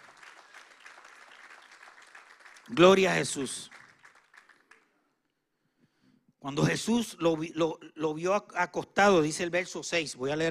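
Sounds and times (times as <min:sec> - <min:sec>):
audience applause: 0:00.0 - 0:04.9
speech: 0:02.7 - 0:03.7, 0:06.4 - 0:10.4.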